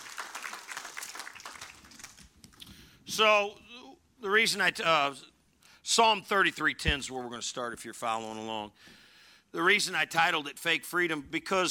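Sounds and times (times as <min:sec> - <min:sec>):
audience applause: 0:00.0 - 0:02.3
speech: 0:03.2 - 0:03.6, 0:04.2 - 0:11.7.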